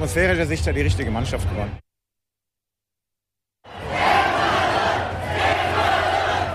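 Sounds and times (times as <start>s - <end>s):
speech: 0.0s - 1.8s
football stadium crowd roar during a Germany–Ecuador World Cup match: 3.7s - 6.5s.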